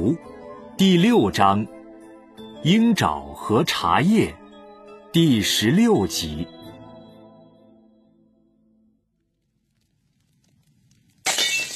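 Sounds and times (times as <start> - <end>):
speech: 0.0 - 1.7, 2.6 - 4.4, 5.2 - 6.6
china teacup shattering: 11.2 - 11.7.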